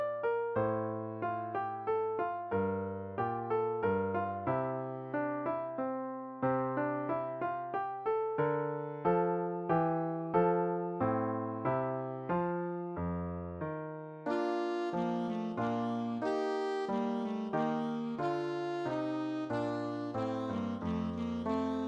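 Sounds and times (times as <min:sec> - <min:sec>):
piano accompanying a minuet: 0:00.0 - 0:21.8
alto saxophone playing a minuet: 0:14.3 - 0:21.8.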